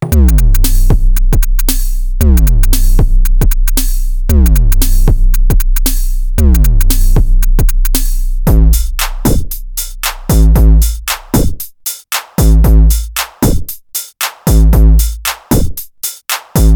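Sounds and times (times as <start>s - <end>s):
EDM drums: 0.1s - 16.7s.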